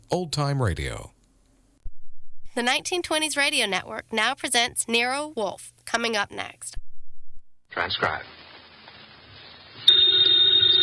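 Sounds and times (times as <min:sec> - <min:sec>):
speech: 0:00.1 - 0:01.2, 0:02.6 - 0:06.8, 0:07.7 - 0:08.4
telephone bell ringing: 0:09.9 - 0:10.8.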